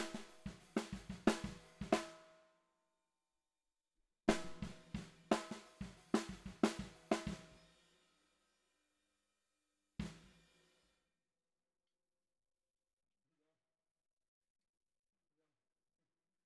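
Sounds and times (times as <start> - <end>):
bottom snare drum: 0.0 - 2.2, 4.3 - 7.7, 10.0 - 10.5.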